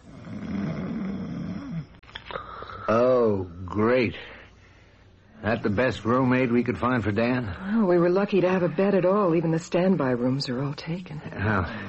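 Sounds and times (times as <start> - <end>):
loud rhythmic snoring of a heavily muscled aged man: 0.0 - 1.9
speech: 2.9 - 4.4, 5.4 - 11.8.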